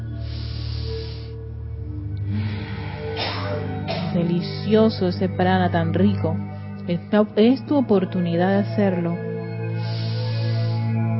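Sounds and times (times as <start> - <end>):
deep breath: 0.0 - 1.6, 2.2 - 3.9, 9.6 - 11.1
speech: 4.2 - 10.0.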